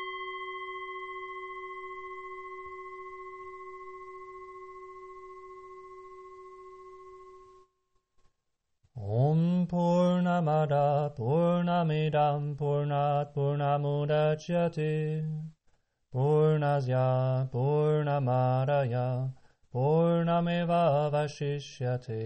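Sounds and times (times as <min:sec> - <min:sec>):
mantra chant: 0:09.0 - 0:15.5, 0:16.1 - 0:22.2.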